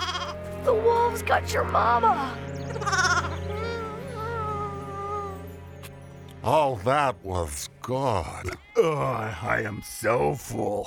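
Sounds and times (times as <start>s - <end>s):
sheep bleating: 0.0s - 0.4s, 2.7s - 3.6s, 8.2s - 10.6s
speech: 0.7s - 3.0s, 6.4s - 10.8s.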